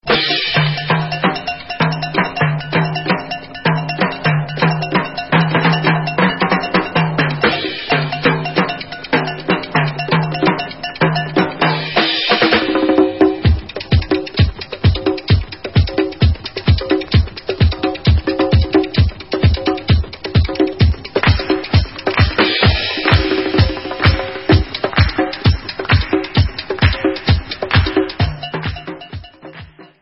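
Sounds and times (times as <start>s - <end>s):
samba music: 0.0s - 29.9s.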